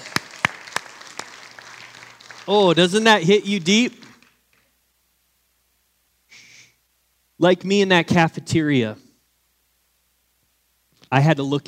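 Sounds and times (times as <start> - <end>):
audience clapping: 0.0 - 4.7
speech: 2.5 - 4.0, 7.4 - 9.0, 11.1 - 11.6.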